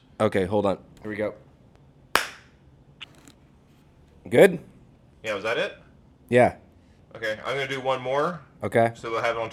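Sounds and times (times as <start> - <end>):
speech: 0.2 - 1.4, 4.2 - 9.5
single hand clap for syncing recorders: 2.2 - 2.5.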